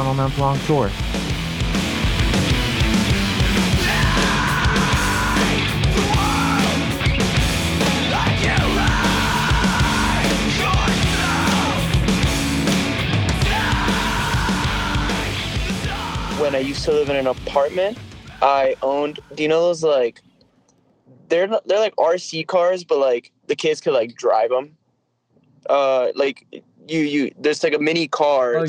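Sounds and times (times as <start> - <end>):
thick driving guitar: 0.0 - 18.5
loud dense rock song: 0.0 - 19.1
speech: 0.1 - 3.4, 16.4 - 20.3, 21.3 - 24.8, 25.6 - 28.6
strained vocal line in repeated phrases: 3.6 - 12.6, 13.3 - 16.9.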